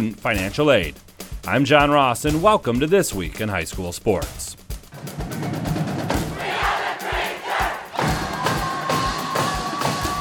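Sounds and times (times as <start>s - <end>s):
speech: 0.0s - 5.3s
heavy rhythmic thumps: 0.0s - 10.1s
high school student section cheering at a Battle of the Fans event: 5.3s - 10.1s.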